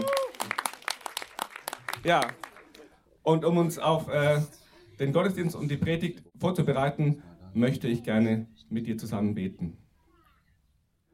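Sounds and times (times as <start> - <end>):
audience applause: 0.0 - 3.0
speech: 2.0 - 2.4, 3.2 - 9.8.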